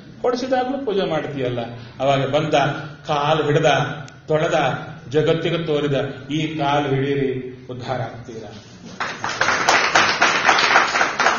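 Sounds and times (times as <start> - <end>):
speech: 0.2 - 9.4
audience clapping: 9.0 - 11.3.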